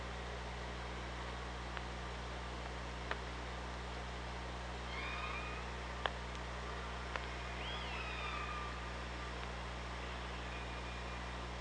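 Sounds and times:
low hum and hiss: 0:00.0 - 0:11.5
killer whale calls underwater: 0:04.9 - 0:05.8, 0:07.4 - 0:08.9.

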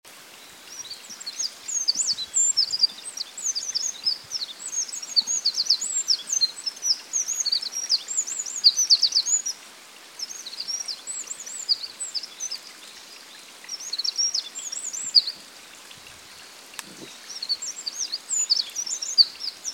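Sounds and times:
background hiss: 0:00.0 - 0:19.7
Eurasian wren song: 0:00.3 - 0:09.6, 0:10.2 - 0:19.7.

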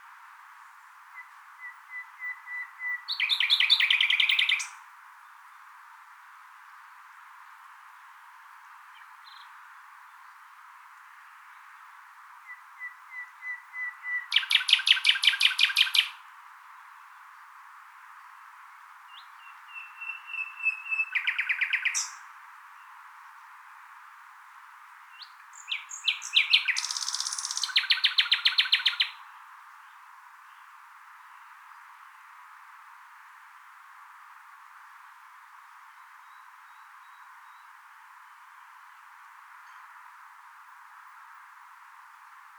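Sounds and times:
common nightingale singing: 0:01.1 - 0:04.8, 0:12.4 - 0:16.2, 0:19.1 - 0:23.0, 0:25.1 - 0:29.4.

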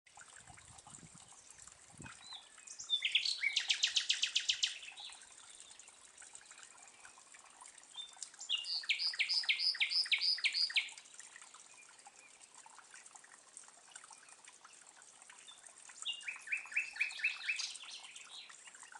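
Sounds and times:
common nightingale Luscinia megarhynchos singing: 0:02.2 - 0:05.2, 0:08.0 - 0:11.0, 0:16.0 - 0:18.5.

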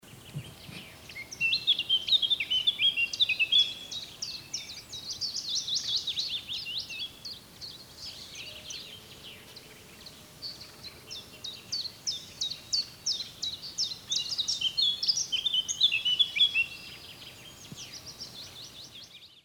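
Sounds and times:
Eurasian blackcap warbling song: 0:00.0 - 0:19.4.

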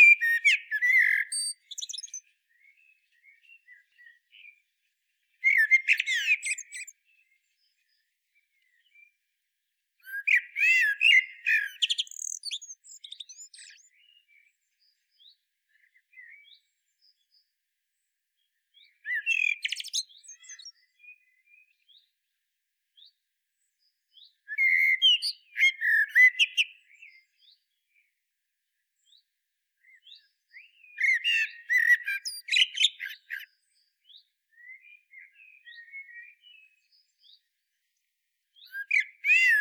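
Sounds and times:
common blackbird song: 0:00.0 - 0:39.5.

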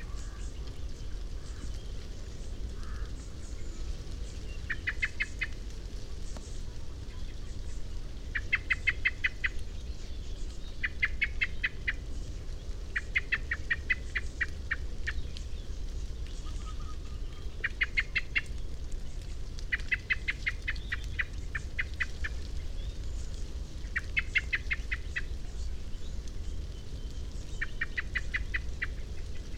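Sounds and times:
low droning rumble: 0:00.0 - 0:29.5
common blackbird chink calls: 0:04.5 - 0:05.6, 0:08.3 - 0:12.0, 0:13.0 - 0:15.4, 0:16.4 - 0:18.6, 0:19.7 - 0:23.2, 0:23.8 - 0:29.5.

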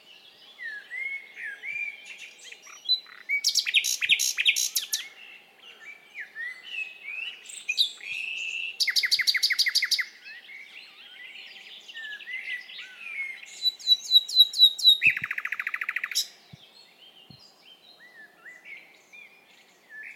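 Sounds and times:
Luscinia megarhynchos common nightingale singing: 0:00.0 - 0:20.1.

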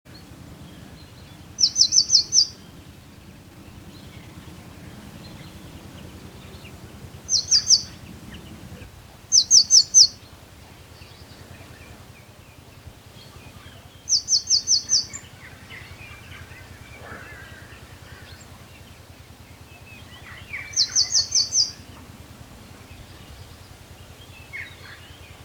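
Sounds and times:
Eurasian blue tit downslurred calls: 0:00.1 - 0:25.4.

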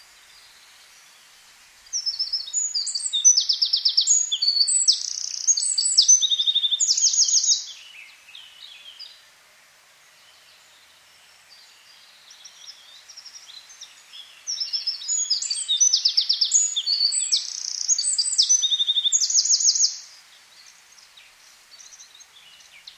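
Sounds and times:
Eurasian wren singing: 0:01.9 - 0:09.2, 0:11.6 - 0:21.1.

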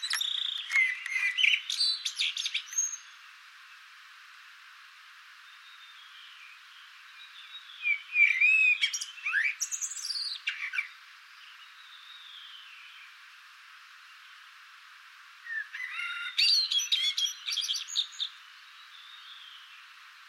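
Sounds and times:
Eurasian blackbird song: 0:00.0 - 0:03.2, 0:05.4 - 0:13.2, 0:15.4 - 0:20.0.

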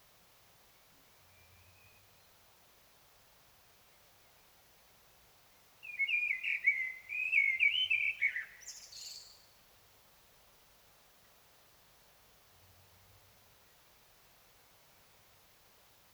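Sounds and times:
Common blackbird singing: 0:05.8 - 0:09.4.

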